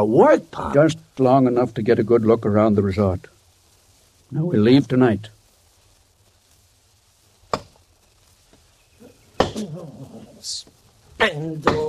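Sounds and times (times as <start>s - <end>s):
speech: 0.0s - 3.3s, 4.3s - 5.4s, 11.2s - 11.8s
axe chopping wood: 7.5s - 7.7s, 9.4s - 9.6s, 11.6s - 11.8s.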